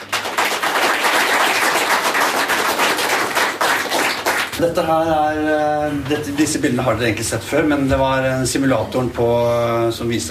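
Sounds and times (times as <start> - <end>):
crowd applauding: 0.0 - 4.6
speech: 4.6 - 10.3.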